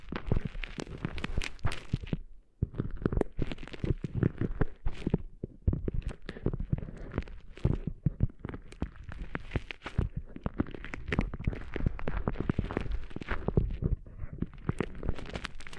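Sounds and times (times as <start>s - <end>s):
gritty scratching and crackling of cleaning sand out of ears: 0.0s - 15.7s.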